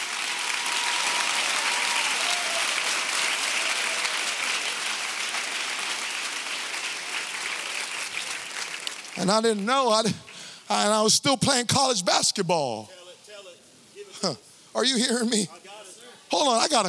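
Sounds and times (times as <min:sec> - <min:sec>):
large crowd applause: 0:00.0 - 0:10.6
faint cheering voices: 0:00.3 - 0:04.5
speech: 0:09.2 - 0:13.0, 0:14.2 - 0:15.6, 0:16.3 - 0:16.8.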